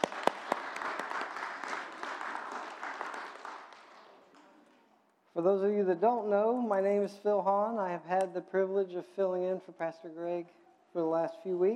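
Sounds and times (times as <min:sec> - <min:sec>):
crowd clapping for children at a church service: 0:00.0 - 0:04.9
speech: 0:05.4 - 0:11.7.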